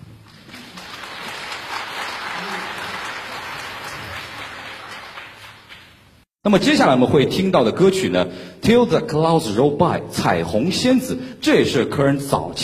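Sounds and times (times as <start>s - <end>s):
applause welcoming singers onto a concert stage: 0.2s - 6.1s
speech: 6.4s - 12.6s.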